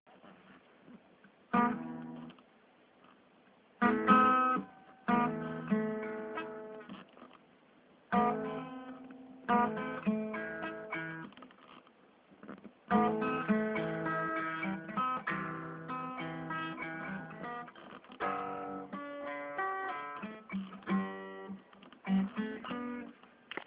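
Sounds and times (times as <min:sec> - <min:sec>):
guitar playing: 0:01.5 - 0:02.4, 0:03.8 - 0:07.1, 0:08.1 - 0:11.4, 0:12.4 - 0:23.2.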